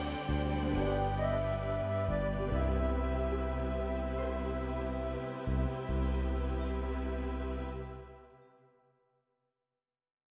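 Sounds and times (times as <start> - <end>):
modern melody: 0.0 - 8.2.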